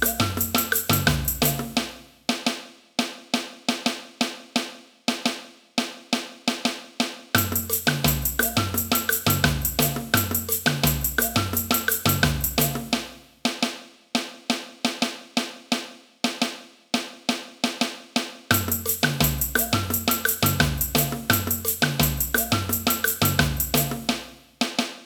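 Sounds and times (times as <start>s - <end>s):
samba music: 0.0s - 2.0s, 7.4s - 13.2s, 18.5s - 24.4s
caixa snare drum: 0.0s - 25.0s.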